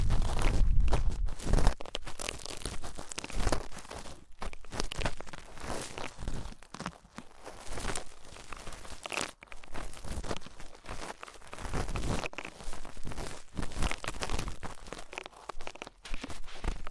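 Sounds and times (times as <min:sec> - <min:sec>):
deep rumbling: 0:00.0 - 0:01.6
ear cleaning scratching and rubbing: 0:00.0 - 0:16.9.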